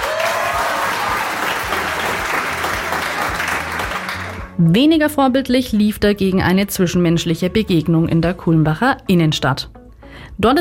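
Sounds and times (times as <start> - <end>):
audience applause: 0.0 - 4.6
speech: 4.6 - 10.6.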